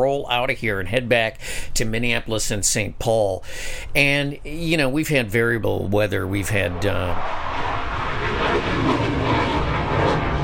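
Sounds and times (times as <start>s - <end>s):
speech: 0.0s - 7.7s
F/A-18 fighter jets flying overhead: 6.3s - 10.4s.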